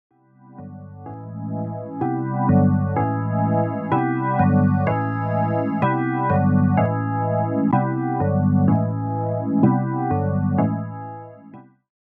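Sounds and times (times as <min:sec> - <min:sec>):
chords: 0:00.4 - 0:11.6.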